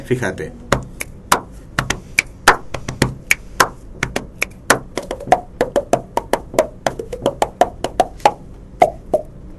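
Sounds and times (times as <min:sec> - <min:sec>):
body percussion music: 0:00.7 - 0:09.3.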